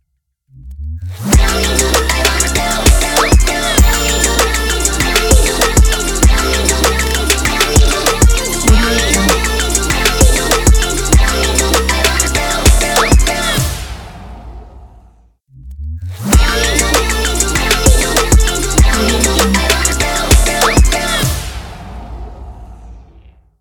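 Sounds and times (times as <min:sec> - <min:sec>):
hyperpop music: 0:01.2 - 0:13.9, 0:16.2 - 0:21.6.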